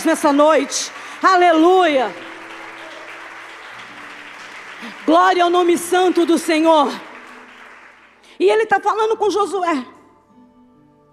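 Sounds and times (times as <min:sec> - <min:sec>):
speech: 0:00.0 - 0:02.3, 0:04.8 - 0:07.1, 0:08.4 - 0:10.0
crowd clapping: 0:00.0 - 0:08.7.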